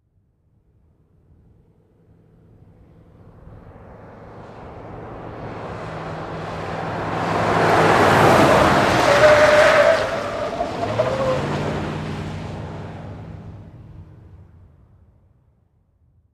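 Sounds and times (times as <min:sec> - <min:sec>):
Ford Expedition driving fast around a corner: 0:01.4 - 0:14.7.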